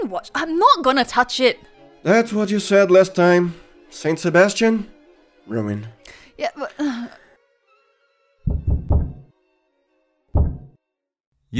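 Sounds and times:
speech: 0:00.1 - 0:07.0
heavy pounding on a door: 0:08.5 - 0:09.3, 0:10.4 - 0:10.7.

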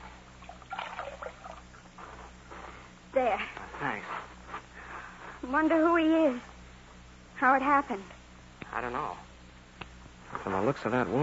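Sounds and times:
water poured to wet a scarf, trickling and splashing: 0:00.4 - 0:01.8
speech: 0:03.2 - 0:04.1, 0:05.5 - 0:06.5, 0:07.4 - 0:08.2, 0:08.8 - 0:09.3, 0:10.4 - 0:11.2.

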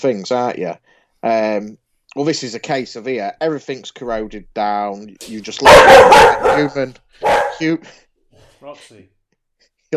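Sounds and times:
speech: 0:00.0 - 0:09.2
dog barking: 0:05.6 - 0:07.7.

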